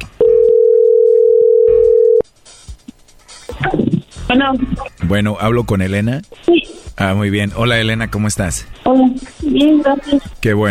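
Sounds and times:
dial tone: 0.2s - 2.2s
speech: 4.3s - 10.6s.

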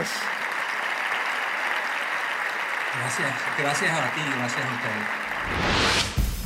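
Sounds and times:
audience applause: 0.0s - 6.0s
speech: 3.0s - 6.3s.

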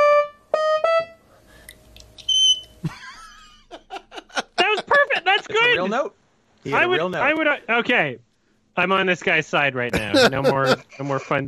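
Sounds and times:
fire smoke detector beep: 2.3s - 2.8s
speech: 2.8s - 3.0s, 5.8s - 11.4s
laughter: 2.8s - 5.8s, 9.9s - 11.4s.

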